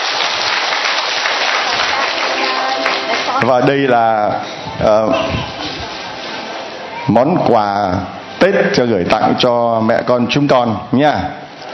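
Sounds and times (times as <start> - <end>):
crowd clapping: 0.0 - 3.9
speech: 3.4 - 5.6, 7.1 - 11.4.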